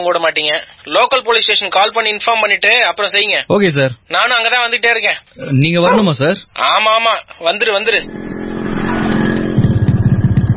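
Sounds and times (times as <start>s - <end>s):
speech: 0.0s - 8.4s
motor vehicle arriving and stopping: 8.0s - 10.5s.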